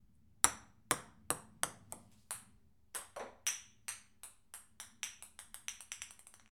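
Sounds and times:
ping pong ball bouncing: 0.4 - 6.5.

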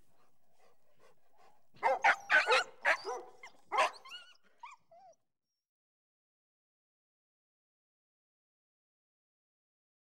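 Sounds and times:
dog yelping: 1.8 - 5.2.

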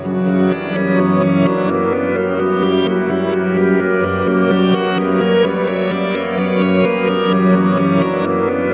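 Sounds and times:
ambient guitar Egypt texture: 0.0 - 8.7.

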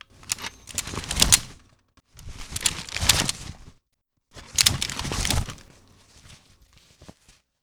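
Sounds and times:
pistol or revolver being holstered and unholstered: 0.0 - 1.6, 2.2 - 3.6, 4.4 - 5.6.

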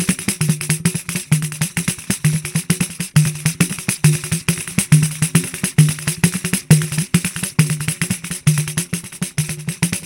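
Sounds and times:
pandeiro: 0.0 - 10.0.

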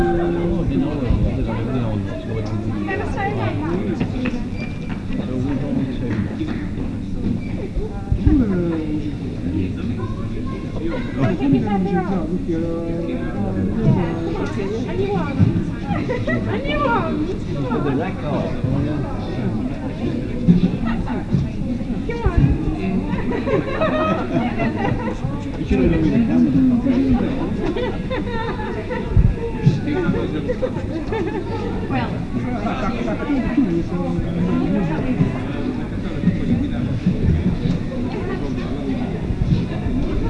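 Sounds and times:
airport lounge ambience: 0.0 - 40.2
laughter: 15.8 - 17.0, 22.9 - 31.8.

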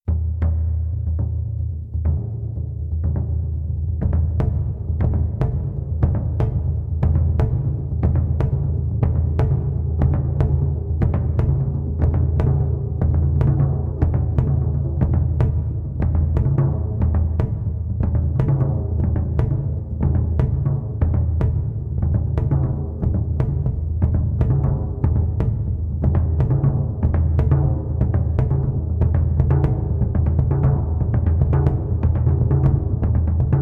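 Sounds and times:
tribal drums: 0.1 - 33.6.

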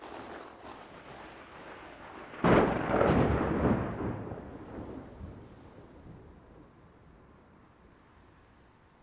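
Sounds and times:
loud thunder clap: 2.4 - 5.4.

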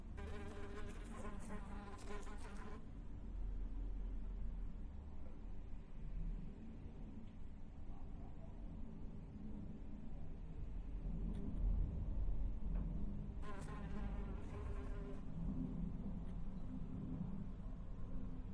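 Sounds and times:
fly buzzing: 0.2 - 2.8, 13.4 - 15.2
low background rumble: 3.0 - 18.5.

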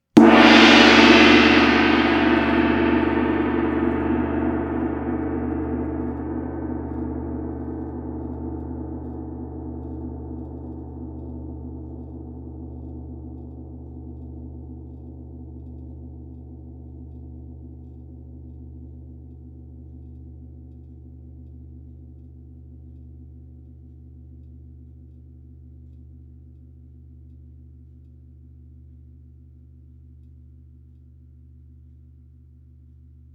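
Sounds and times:
old Zildjian gong ringing: 0.2 - 8.4.

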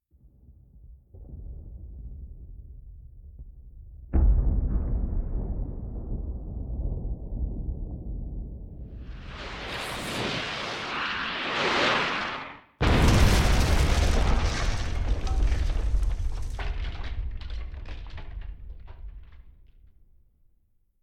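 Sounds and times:
incoming cannonball at a castle: 4.1 - 11.6, 12.8 - 19.6.

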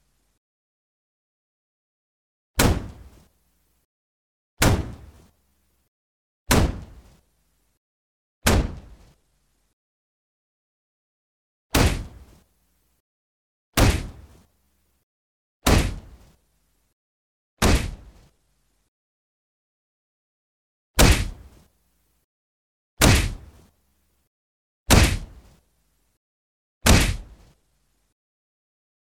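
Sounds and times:
heavy intense punches or kicks: 2.6 - 3.2, 4.6 - 5.2, 6.5 - 7.1, 8.4 - 9.1, 11.7 - 12.4, 13.8 - 14.4, 15.6 - 16.3, 17.6 - 18.2, 21.0 - 21.5, 23.0 - 23.6, 24.9 - 25.4, 26.8 - 27.5.

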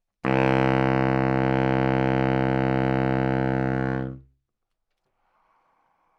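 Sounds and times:
baritone saxophone note C3: 0.2 - 4.2.

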